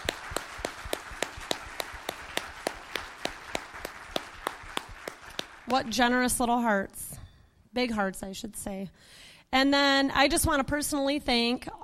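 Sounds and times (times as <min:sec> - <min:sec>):
crowd applause: 0:00.0 - 0:05.9
speech: 0:05.7 - 0:11.8.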